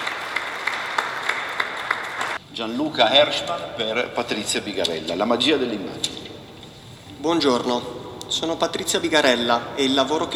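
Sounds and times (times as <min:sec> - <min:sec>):
audience applause at a book-art presentation: 0:00.0 - 0:02.4
speech: 0:02.6 - 0:06.2, 0:07.2 - 0:10.3.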